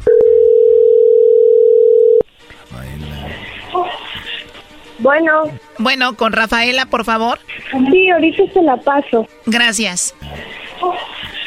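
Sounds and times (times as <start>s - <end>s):
telephone tone: 0.0s - 2.2s
speech: 5.1s - 11.0s.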